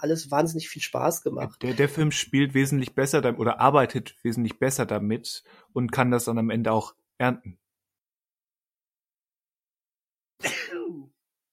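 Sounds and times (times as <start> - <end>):
speech: 0.0 - 7.6
sneeze: 10.4 - 11.1.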